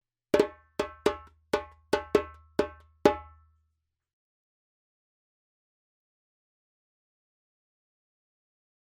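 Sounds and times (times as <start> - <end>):
djembe drumming: 0.4 - 3.3.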